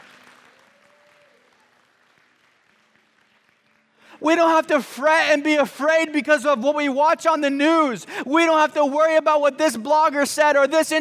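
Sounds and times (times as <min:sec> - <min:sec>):
audience clapping: 0:00.0 - 0:04.2
speech: 0:04.2 - 0:11.0.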